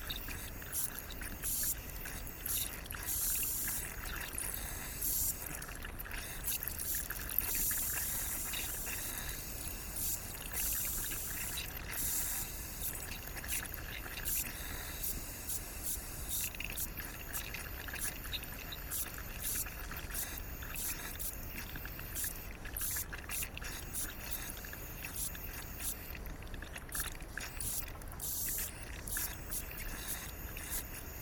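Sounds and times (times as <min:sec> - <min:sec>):
hissing pipe in Annapurna Nepal: 0:00.0 - 0:31.2.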